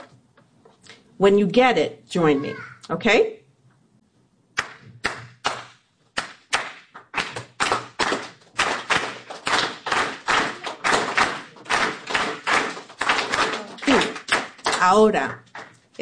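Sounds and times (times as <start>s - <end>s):
speech: 1.2s - 3.4s, 14.9s - 15.4s
Cuban clave rhythm clapped or tapped: 4.6s - 15.9s.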